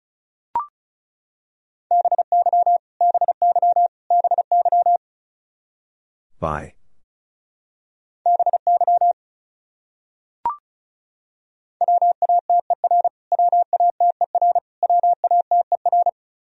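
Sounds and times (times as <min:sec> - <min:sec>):
Morse code tones at 35 words per minute: 0:01.9 - 0:05.0, 0:08.3 - 0:09.2, 0:11.8 - 0:16.2
speech: 0:06.4 - 0:06.8.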